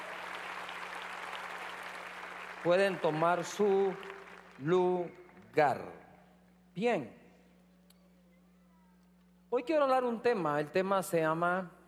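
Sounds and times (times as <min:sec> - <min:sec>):
faint applause from a church congregation: 0:00.0 - 0:04.6
speech: 0:02.6 - 0:06.0, 0:06.8 - 0:07.2, 0:09.5 - 0:11.8.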